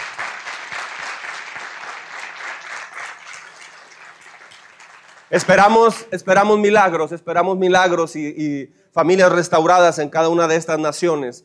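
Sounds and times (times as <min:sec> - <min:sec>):
audience applause: 0:00.0 - 0:05.9
speech: 0:05.3 - 0:11.4.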